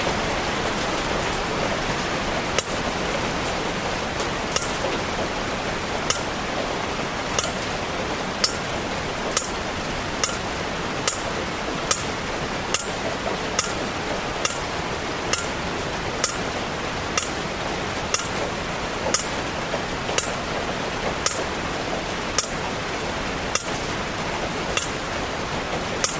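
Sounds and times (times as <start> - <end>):
rain hiss in June rainy season: 0.0 - 26.1
roof leak water dripping onto a plate: 4.1 - 22.6, 23.5 - 24.1, 24.7 - 25.1, 26.0 - 26.1.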